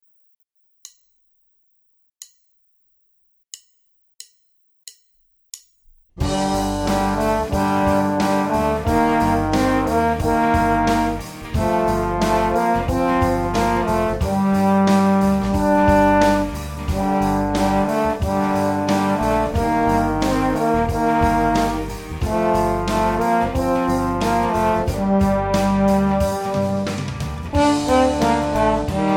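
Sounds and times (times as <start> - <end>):
heavy rock duet: 6.2 - 29.1.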